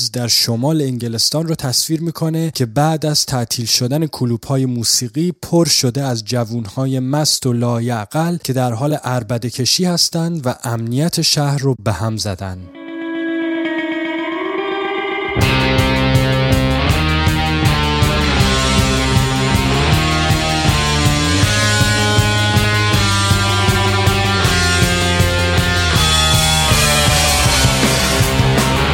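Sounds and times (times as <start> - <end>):
speech: 0.1 - 12.8
rock song playing: 12.7 - 28.9.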